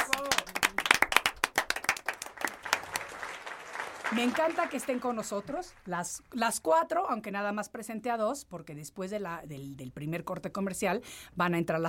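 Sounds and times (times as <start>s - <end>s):
audience applause: 0.0s - 6.0s
speech: 4.1s - 11.8s.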